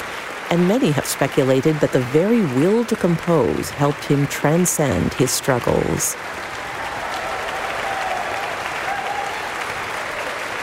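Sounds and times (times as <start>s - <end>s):
concert audience applauding: 0.0s - 10.6s
speech: 0.5s - 6.6s
faint cheers and whistles: 6.4s - 10.6s.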